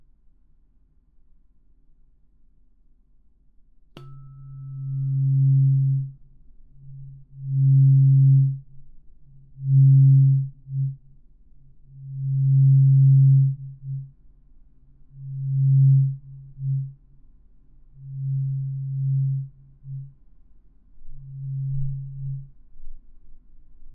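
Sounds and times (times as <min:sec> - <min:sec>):
tuning fork strike: 0:04.0 - 0:14.3, 0:17.9 - 0:20.4, 0:21.1 - 0:23.0
136.1 Hz tuning fork hum: 0:04.0 - 0:23.9.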